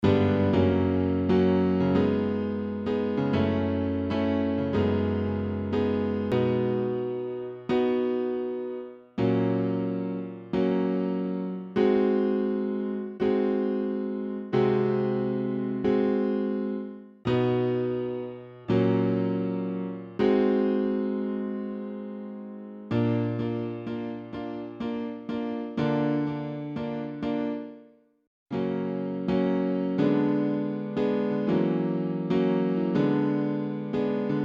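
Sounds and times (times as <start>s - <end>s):
instrumental music: 0.0s - 34.4s.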